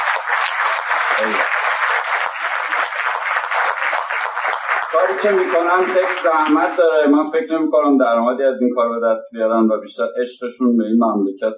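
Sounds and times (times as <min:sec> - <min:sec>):
audience clapping at the Iran Web and Mobile Festival in Shiraz: 0:00.0 - 0:07.2
speech: 0:01.2 - 0:01.6, 0:05.0 - 0:11.5.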